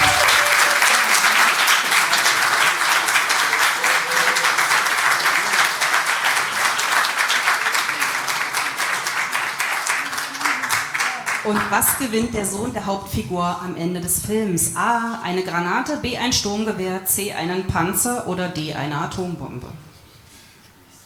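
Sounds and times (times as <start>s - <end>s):
audience applause for a performer coming onto a stage: 0.0s - 12.0s
speech: 11.7s - 19.8s.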